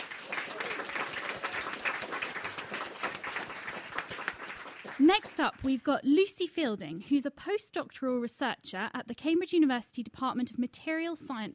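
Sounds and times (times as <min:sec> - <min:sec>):
studio audience applause: 0:00.0 - 0:05.8
speech: 0:05.0 - 0:11.5.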